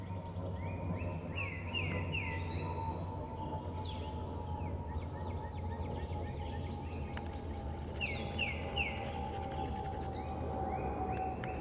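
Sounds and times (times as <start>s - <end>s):
birds singing in the forest: 0.0s - 11.5s
low rumble and hum: 0.0s - 11.5s.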